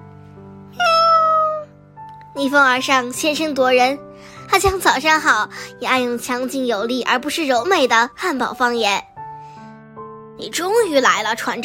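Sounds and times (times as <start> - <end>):
cat meowing: 0.8 - 1.7
speech: 2.4 - 9.0, 10.5 - 11.6.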